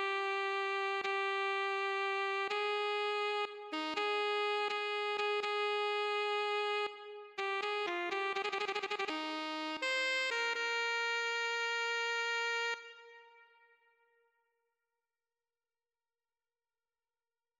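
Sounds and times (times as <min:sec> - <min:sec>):
alto saxophone: 0:00.0 - 0:13.6.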